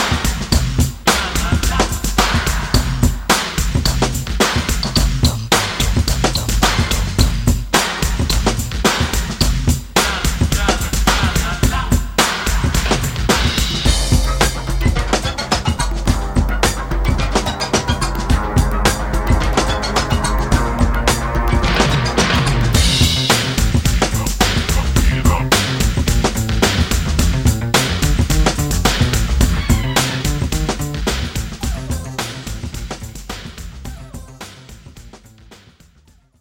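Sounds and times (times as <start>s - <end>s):
80s funk drum loop: 0.0s - 36.1s.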